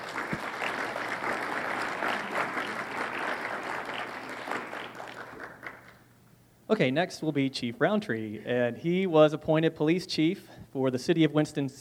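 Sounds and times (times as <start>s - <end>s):
audience applause welcoming a singer at an event: 0.0s - 6.0s
speech: 6.7s - 11.8s.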